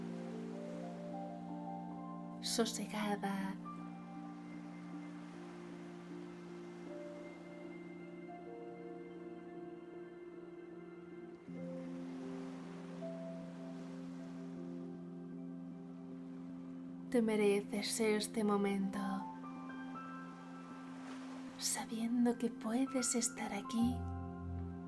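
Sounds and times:
sea waves coming and going: 0:00.0 - 0:24.5
speech: 0:02.4 - 0:03.7, 0:17.1 - 0:19.1, 0:21.9 - 0:24.2.

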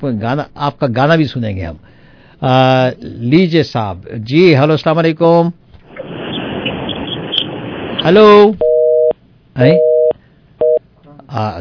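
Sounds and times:
speech: 0:00.0 - 0:05.6, 0:08.0 - 0:08.6, 0:09.6 - 0:09.9, 0:11.3 - 0:11.6
telephone busy tone after a caller's line was cut: 0:08.6 - 0:10.8.

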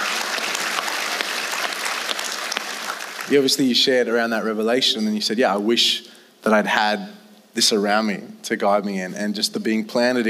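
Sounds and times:
audience clapping: 0:00.0 - 0:03.7
speech: 0:03.3 - 0:10.2.

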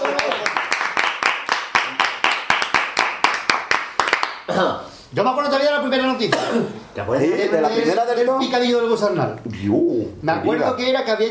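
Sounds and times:
small group applauding: 0:00.0 - 0:04.6
speech: 0:04.5 - 0:11.3.

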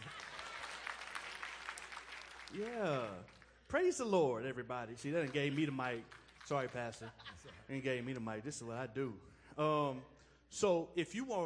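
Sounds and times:
laughter: 0:00.0 - 0:00.8, 0:05.2 - 0:08.2
audience applause: 0:00.0 - 0:03.6, 0:05.1 - 0:07.1
speech: 0:02.5 - 0:11.4.

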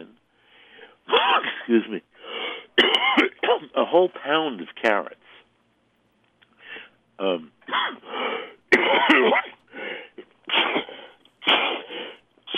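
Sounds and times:
sneeze during radio cooking segment: 0:01.1 - 0:01.7, 0:08.8 - 0:09.6, 0:10.5 - 0:11.9
speech: 0:01.7 - 0:02.1, 0:03.7 - 0:05.2, 0:07.2 - 0:10.8.

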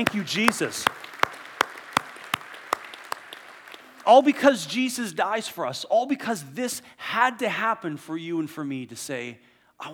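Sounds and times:
speech: 0:00.0 - 0:01.0, 0:04.1 - 0:09.9
audience applause: 0:00.0 - 0:04.6
sharp rhythmic claps: 0:00.0 - 0:04.9.

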